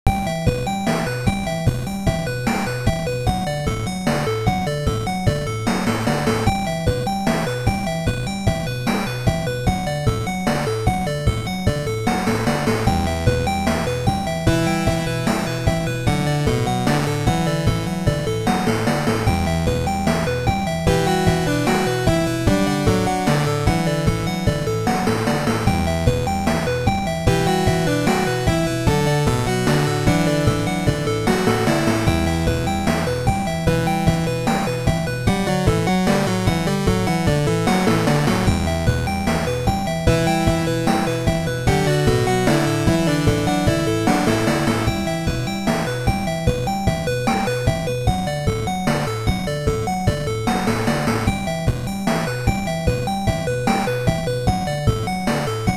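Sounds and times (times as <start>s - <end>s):
slow dark music: 0.1s - 55.7s.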